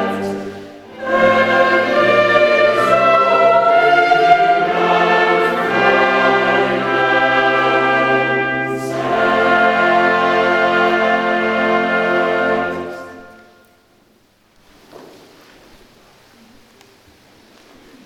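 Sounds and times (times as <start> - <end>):
choir singing: 0.0 - 13.6.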